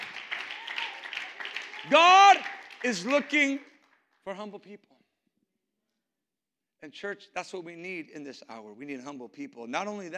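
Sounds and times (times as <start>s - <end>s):
crowd clapping: 0.0s - 4.3s
speech: 1.8s - 2.2s, 2.8s - 5.0s, 6.8s - 10.1s.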